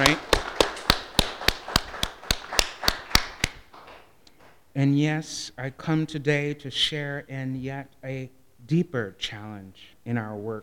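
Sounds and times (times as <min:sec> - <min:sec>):
speech: 0:00.0 - 0:00.3, 0:04.8 - 0:10.6
audience applause: 0:00.0 - 0:04.1.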